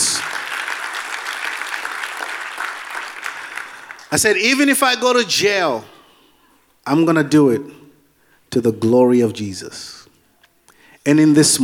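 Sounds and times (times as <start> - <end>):
audience applauding: 0.0 - 4.7
speech: 4.1 - 5.9, 6.9 - 7.8, 8.5 - 10.0, 11.0 - 11.6.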